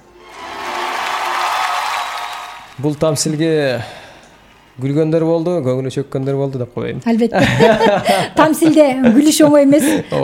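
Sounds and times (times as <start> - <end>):
audience applause after a fable recitation: 0.0 - 4.1
speech: 2.8 - 4.0, 4.8 - 10.2
laughter: 7.4 - 10.2.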